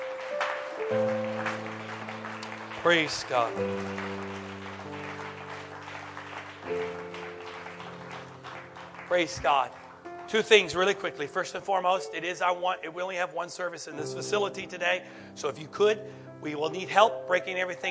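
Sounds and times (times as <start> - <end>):
audience clapping hands: 0.0 - 11.1
speech: 2.8 - 4.5, 9.1 - 17.8.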